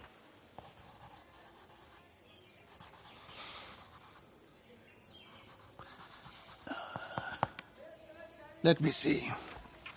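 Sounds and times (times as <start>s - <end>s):
handwriting on a surface: 0.5s - 4.3s, 5.1s - 7.0s
speech: 8.6s - 9.5s.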